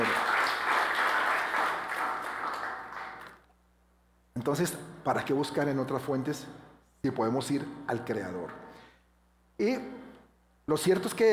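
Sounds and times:
audience applause: 0.0 - 3.4
speech: 4.4 - 8.6, 9.6 - 10.0, 10.7 - 11.3.

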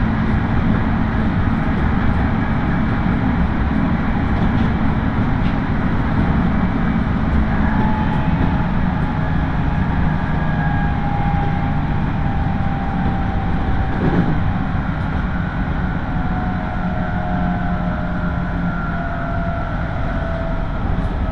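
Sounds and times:
local train on the Tokaido Main Line rumbling: 0.0 - 21.3.

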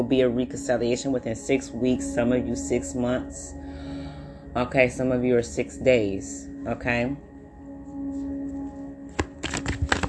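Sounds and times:
speech: 0.0 - 3.9, 4.5 - 7.3
low steady hum: 0.0 - 10.0
tarot cards shuffling and dropping: 9.1 - 10.0.

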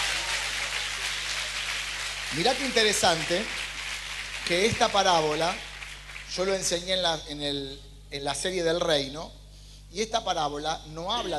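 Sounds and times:
audience applause: 0.0 - 6.7
speech: 2.3 - 3.7, 4.4 - 5.7, 6.3 - 11.3.

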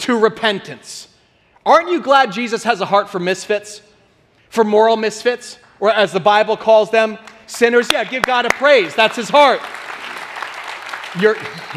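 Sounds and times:
speech: 0.0 - 3.9, 4.5 - 10.1, 11.1 - 11.7
audience clapping: 7.2 - 11.7.

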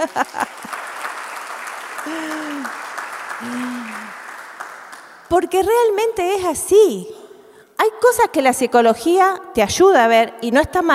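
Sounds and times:
speech: 0.0 - 0.4, 2.0 - 2.8, 3.4 - 4.1, 5.3 - 7.2, 8.0 - 10.9
laughter: 0.0 - 0.9, 2.0 - 2.8, 3.4 - 4.2
audience applause: 0.0 - 5.3.

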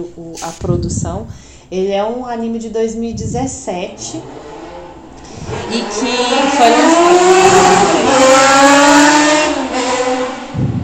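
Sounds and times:
speech: 0.0 - 4.5, 5.5 - 8.7
motorcycle roaring past outside: 3.2 - 10.8.

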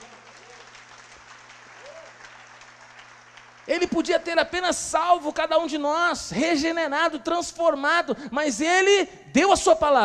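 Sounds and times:
audience clapping: 0.0 - 4.6
speech: 3.7 - 10.0.

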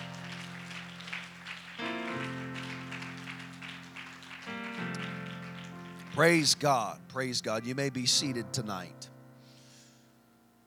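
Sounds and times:
crowd clapping hands: 0.0 - 6.9
sustained organ or keyboard chords: 0.0 - 9.4
speech: 6.2 - 9.1.

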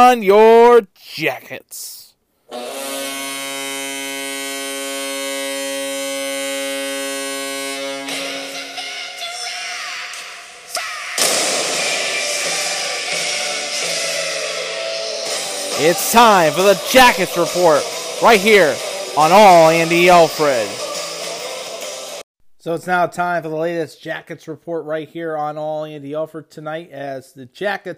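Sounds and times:
speech: 0.0 - 2.8, 15.8 - 20.8, 22.6 - 27.9
goal horn: 2.5 - 9.0, 15.3 - 21.9
cannon fire: 11.2 - 12.0.

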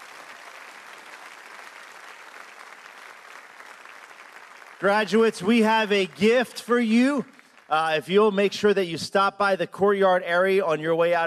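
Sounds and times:
audience applauding: 0.0 - 8.5
speech: 4.8 - 11.2.

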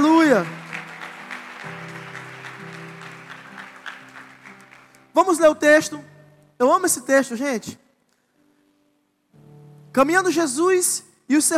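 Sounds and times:
audience applause: 0.0 - 5.2
speech: 0.3 - 0.6, 5.2 - 7.8, 10.0 - 11.5.

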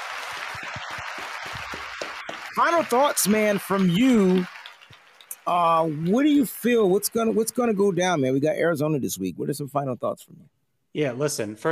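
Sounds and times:
round of applause: 0.0 - 8.7
speech: 2.6 - 4.6, 5.5 - 11.6.

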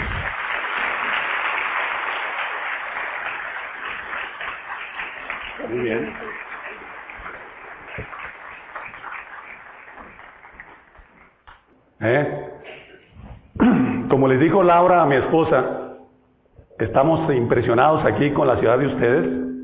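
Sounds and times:
crowd applauding: 0.0 - 11.5
speech: 5.7 - 6.4, 12.0 - 12.5, 14.2 - 15.8, 16.8 - 19.4.

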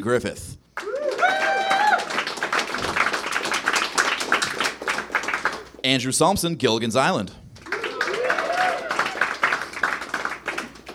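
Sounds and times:
speech: 0.0 - 0.6, 5.8 - 7.4
high whistle or whooping cheer: 0.8 - 2.1, 7.7 - 9.3
audience applause: 0.8 - 5.8, 7.6 - 10.9.

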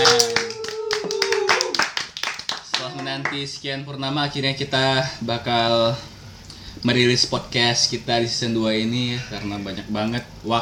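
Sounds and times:
hand clapping from several people: 0.0 - 3.6
speech: 3.2 - 6.1, 6.8 - 10.6.

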